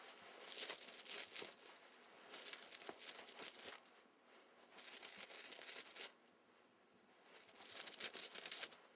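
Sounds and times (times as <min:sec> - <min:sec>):
coins jingling in pocket: 0:00.2 - 0:03.9, 0:04.8 - 0:06.1, 0:07.3 - 0:08.8.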